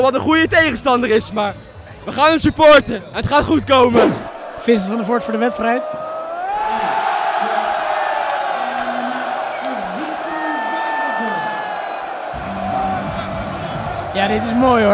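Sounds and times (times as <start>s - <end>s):
speech: 0.0s - 6.0s, 14.2s - 14.9s
darts crowd cheering: 3.8s - 14.9s.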